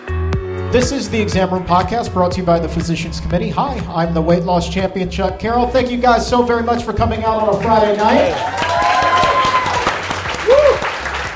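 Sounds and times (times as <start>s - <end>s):
speech: 0.7s - 8.8s
crowd clapping: 7.3s - 11.3s.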